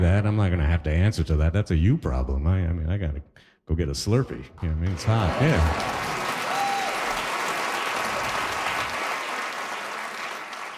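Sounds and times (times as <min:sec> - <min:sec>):
speech: 0:00.1 - 0:06.2
audience applause: 0:04.8 - 0:10.7.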